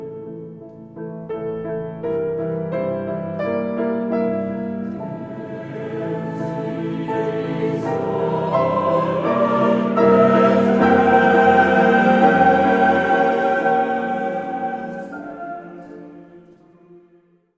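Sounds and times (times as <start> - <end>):
piano played four hands in a church in Cologne: 0.0 - 17.0
choir singing in a church in Cologne: 3.8 - 17.5.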